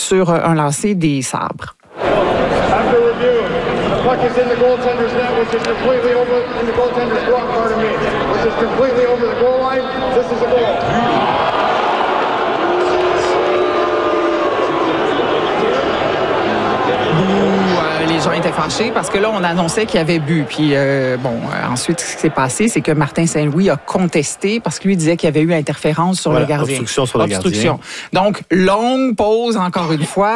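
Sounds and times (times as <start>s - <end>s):
speech: 0.1s - 11.5s, 17.3s - 30.3s
large hockey crowd chatter outside arena: 1.9s - 27.8s
people shouting in hockey crowd: 10.7s - 24.8s.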